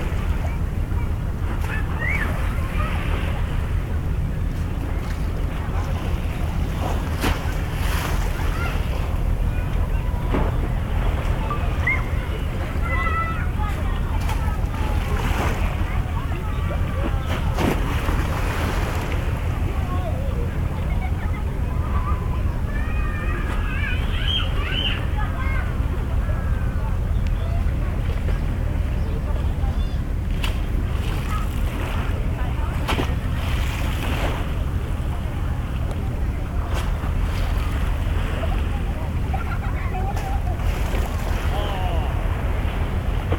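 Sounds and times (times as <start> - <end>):
faint voices: 0.0 - 43.3
water slaps and splashes: 0.0 - 43.3
waves lapping at Yokohama harbor: 0.0 - 43.3.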